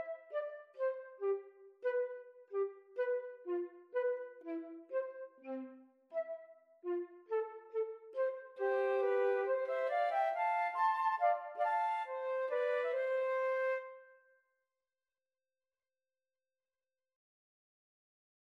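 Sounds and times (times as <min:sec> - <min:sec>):
flute trio: 0:00.0 - 0:14.1.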